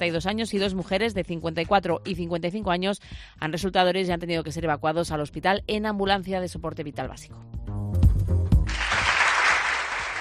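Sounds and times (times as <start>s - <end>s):
speech: 0.0s - 8.1s
crowd clapping at an early World Theatre Day celebration in Valladolid: 8.6s - 10.1s.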